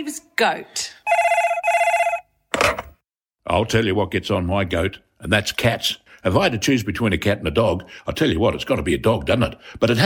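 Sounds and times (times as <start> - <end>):
speech: 0.0 - 1.0, 3.5 - 10.0
telephone ringing with a bright electronic trill: 1.1 - 2.8.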